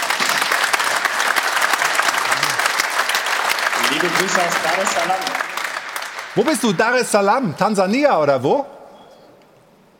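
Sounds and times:
audience applause: 0:00.0 - 0:07.2
speech: 0:03.9 - 0:05.4, 0:06.4 - 0:08.8.

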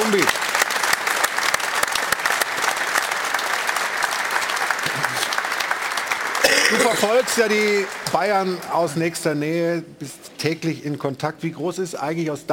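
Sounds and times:
studio audience applause: 0:00.0 - 0:09.4
speech: 0:00.1 - 0:00.4, 0:06.9 - 0:12.5.

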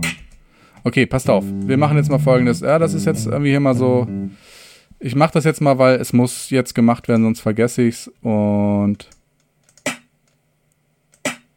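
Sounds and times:
speech: 0:00.8 - 0:09.2
snare drum sample hits: 0:09.9 - 0:10.1.

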